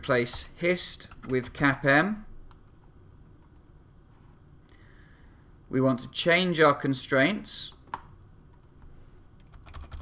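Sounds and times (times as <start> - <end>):
speech: 0.0 - 2.3, 5.7 - 7.8
typing on a computer keyboard: 9.4 - 10.0.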